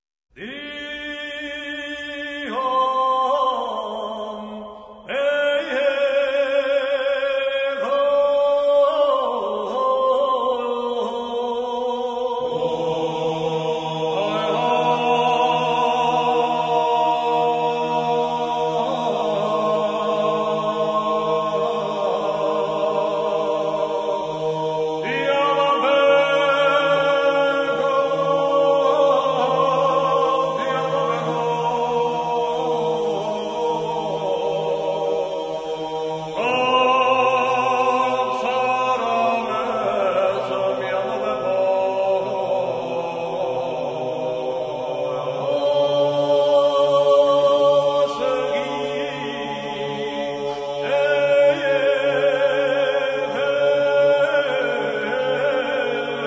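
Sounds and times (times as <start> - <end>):
Georgian polyphonic singing: 0.3 - 56.2.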